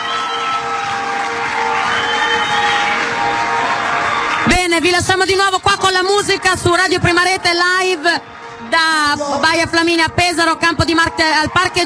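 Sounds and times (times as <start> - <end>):
audience applauding live concert: 0.0 - 7.1, 10.6 - 11.8
speech: 4.8 - 11.8.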